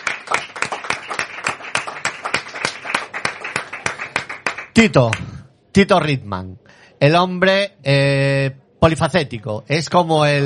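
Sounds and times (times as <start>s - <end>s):
applause from studio hosts: 0.0s - 5.3s
speech: 4.8s - 10.4s.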